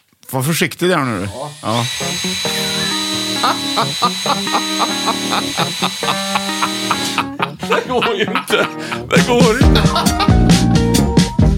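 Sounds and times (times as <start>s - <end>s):
speech: 0.3s - 6.4s, 7.8s - 10.4s
drilling into a coconut: 1.5s - 7.2s
laughter: 2.6s - 10.5s.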